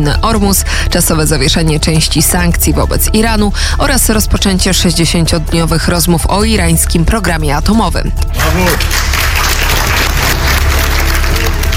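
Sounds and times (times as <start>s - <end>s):
speech: 0.0s - 9.6s
applause: 8.3s - 11.7s.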